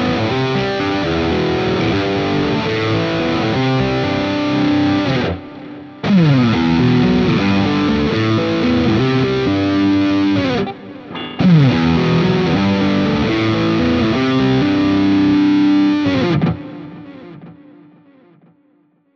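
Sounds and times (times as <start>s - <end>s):
lead riff in all positions: 0.0s - 18.1s.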